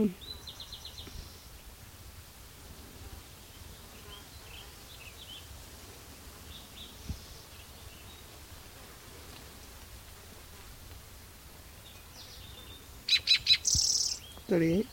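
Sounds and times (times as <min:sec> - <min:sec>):
faint steady background noise: 0:00.0 - 0:14.9
Spotted Towhee song: 0:13.1 - 0:14.2.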